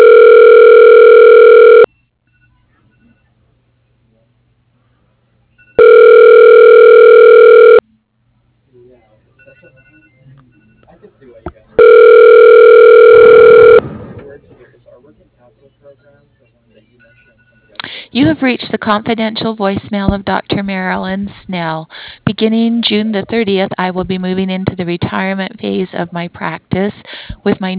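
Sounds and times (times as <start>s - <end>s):
telephone ringing while a call is being transferred: 0.0s - 3.2s, 5.6s - 7.8s, 11.8s - 13.8s
speech: 18.4s - 27.7s.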